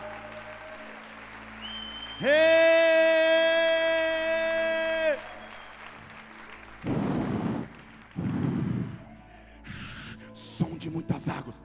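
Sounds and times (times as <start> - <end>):
audience applauding: 0.0 - 9.0
speech: 2.2 - 2.6.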